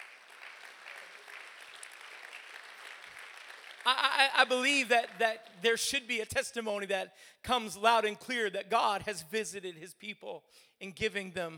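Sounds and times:
audience clapping: 0.0 - 5.7
speech: 3.9 - 11.5.

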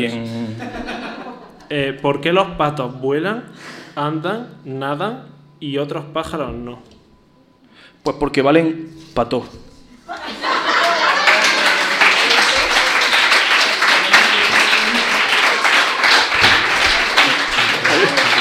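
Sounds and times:
speech: 0.0 - 0.4, 1.7 - 6.9, 8.0 - 10.4
people chuckling: 0.3 - 1.7, 10.1 - 12.8, 13.9 - 18.3
person clapping hands: 10.2 - 18.3.

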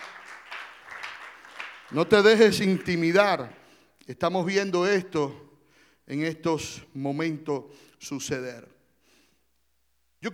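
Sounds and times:
church audience applause: 0.0 - 3.8
speech: 1.9 - 5.5, 6.1 - 8.8.

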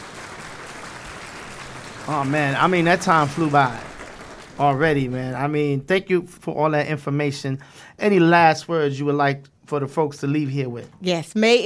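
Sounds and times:
audience applause: 0.0 - 5.7
speech: 2.1 - 3.9, 4.6 - 11.6.

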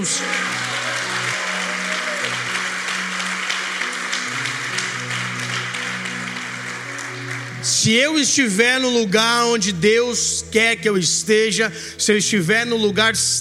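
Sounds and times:
speech: 0.0 - 0.4, 7.8 - 13.4
audience applauding loudly: 0.0 - 8.3.

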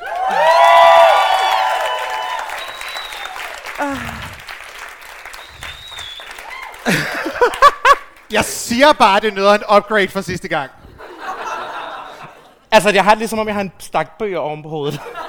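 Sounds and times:
audience clapping: 0.0 - 8.5
laughter: 3.7 - 4.5, 6.8 - 8.2, 10.8 - 12.7, 14.9 - 15.2
speech: 8.3 - 10.8, 12.7 - 15.2.

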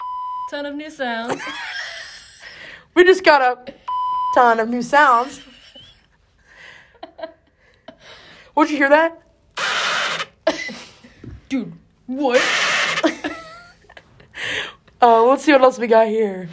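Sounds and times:
soundboard censor bleep: 0.0 - 0.6, 3.9 - 4.4
speech: 0.5 - 1.8, 2.9 - 5.5, 8.6 - 9.2, 11.5 - 12.6, 15.0 - 16.5
laughter: 1.3 - 2.4, 5.3 - 6.2, 12.4 - 14.4.

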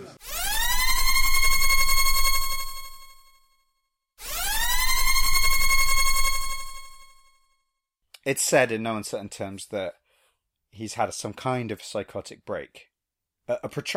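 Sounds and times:
klaxon-style siren wailing: 0.2 - 3.3, 4.2 - 7.3
speech: 8.3 - 10.0, 10.8 - 12.9, 13.5 - 13.9.

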